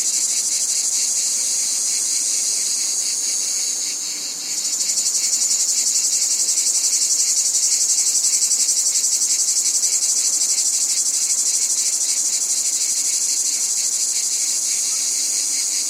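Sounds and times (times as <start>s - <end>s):
cicadas: 0.0s - 15.8s.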